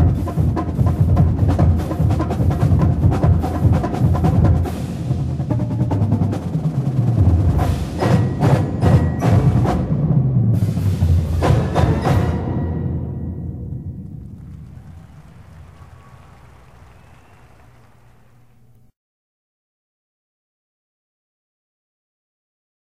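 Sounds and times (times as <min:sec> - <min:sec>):
percussion solo: 0:00.0 - 0:18.3.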